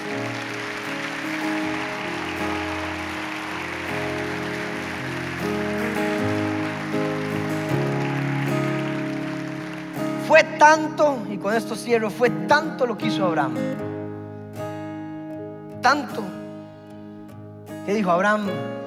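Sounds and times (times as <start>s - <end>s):
audience applauding: 0.0s - 11.4s
speech: 10.6s - 13.9s, 15.8s - 16.4s, 17.8s - 18.8s.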